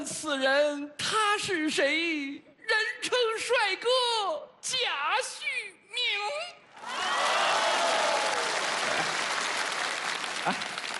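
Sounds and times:
speech: 0:00.0 - 0:08.4, 0:10.4 - 0:10.7
faint cheers: 0:06.8 - 0:09.1
audience applause: 0:06.8 - 0:10.9.

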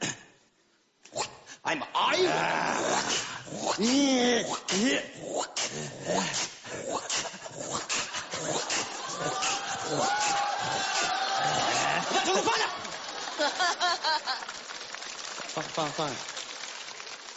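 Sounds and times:
speech: 0:01.6 - 0:07.0, 0:13.4 - 0:14.6, 0:15.6 - 0:16.3
person imitating the family dog with whimpering, whining and yelping: 0:02.1 - 0:12.1
laughter: 0:08.2 - 0:14.5.

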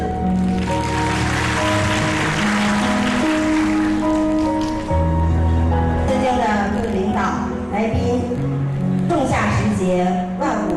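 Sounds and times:
sustained music: 0:00.0 - 0:10.7
warm applause from a large crowd: 0:00.4 - 0:04.9.

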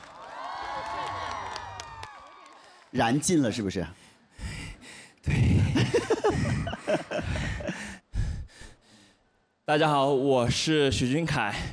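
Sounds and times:
audience at a live stage event cheering and clapping: 0:00.0 - 0:03.2
speech: 0:02.9 - 0:04.0, 0:06.0 - 0:07.7, 0:09.7 - 0:11.7
laughter: 0:05.7 - 0:07.9.

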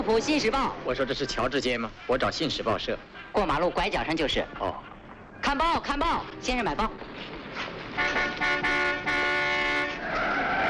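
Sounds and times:
speech: 0:00.1 - 0:09.1
car tires skidding before hitting pedestrian: 0:07.1 - 0:10.6.

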